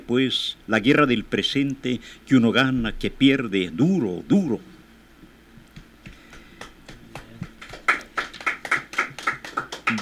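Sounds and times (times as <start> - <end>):
speech: 0.1 - 4.7
applause: 6.3 - 9.9.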